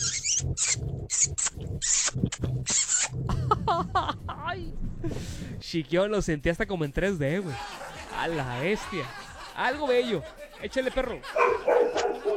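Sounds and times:
smacking kiss sounds: 0.6 - 3.1
laughter: 1.8 - 4.5, 7.3 - 12.3
speech: 5.7 - 12.0.

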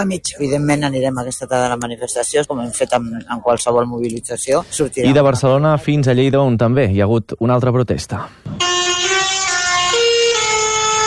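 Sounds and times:
speech: 0.0 - 8.7
busy outdoor street background: 0.0 - 11.0
tractor horns blaring during street protest: 8.5 - 11.0.

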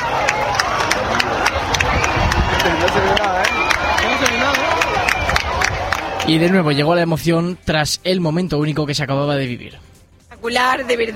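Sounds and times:
beach crowd applauding and cheering: 0.0 - 7.0
speech: 6.3 - 11.1.

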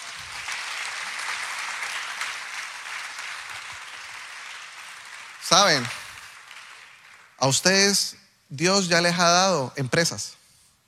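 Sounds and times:
audience applause: 0.0 - 8.0
speech: 5.5 - 6.0, 7.4 - 10.4.

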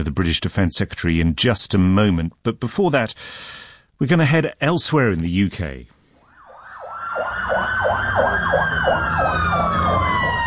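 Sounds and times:
speech: 0.0 - 6.0
emergency vehicle sirens in a city at night: 6.2 - 10.4.

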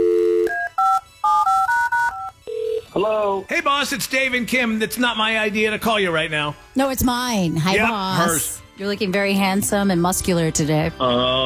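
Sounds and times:
touch-tone dialing of a phone number: 0.0 - 2.8
speech: 3.0 - 11.4.

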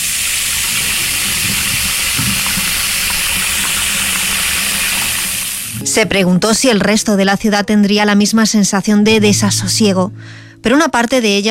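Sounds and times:
water running from a tap in bathroom: 0.0 - 5.9
speech: 6.0 - 11.5.

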